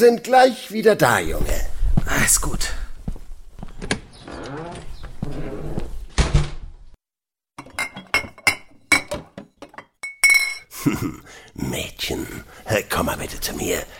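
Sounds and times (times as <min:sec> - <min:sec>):
speech: 0:00.0 - 0:02.8, 0:10.9 - 0:13.9
glass bottles clinking while someone rummages for schnapps: 0:07.6 - 0:10.7.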